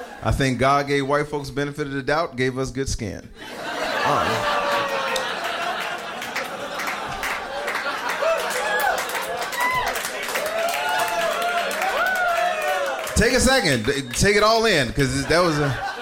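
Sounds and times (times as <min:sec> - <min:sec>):
speech: 0:00.2 - 0:04.6, 0:13.2 - 0:15.9
crowd laughing: 0:03.4 - 0:16.0
crowd clapping and whooping: 0:04.0 - 0:14.8.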